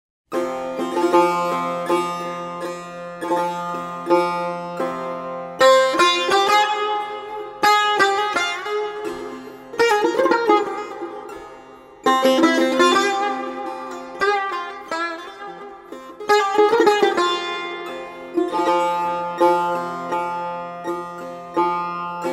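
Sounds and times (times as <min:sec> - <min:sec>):
improvisation in Bayat-e Shiraz mode: 0:00.3 - 0:22.3.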